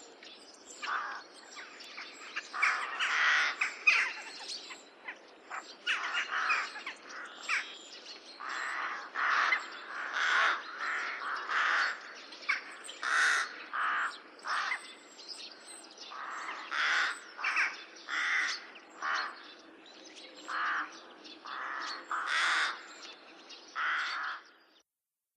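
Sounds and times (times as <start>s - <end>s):
rooks cawing: 0.8s - 1.3s, 2.5s - 4.2s, 5.9s - 7.7s, 8.4s - 15.0s, 16.1s - 19.5s, 20.5s - 23.0s, 23.8s - 24.6s.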